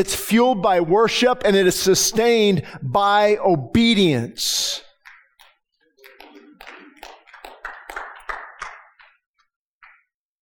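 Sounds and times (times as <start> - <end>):
speech: 0.0 - 4.8
scattered audience clapping: 4.9 - 10.2.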